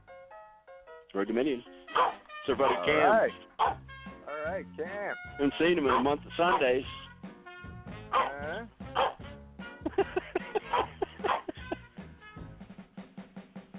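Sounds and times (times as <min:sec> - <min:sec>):
speech: 0:01.1 - 0:03.8, 0:04.4 - 0:07.0
dog barking: 0:01.9 - 0:03.8, 0:05.8 - 0:06.8, 0:08.1 - 0:09.2, 0:10.4 - 0:11.6
laughter: 0:09.8 - 0:11.9.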